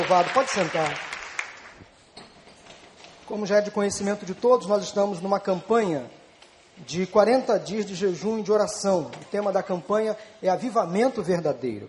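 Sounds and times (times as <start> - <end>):
audience applauding: 0.0 - 1.8
speech: 0.1 - 1.1, 3.3 - 6.2, 6.8 - 11.8.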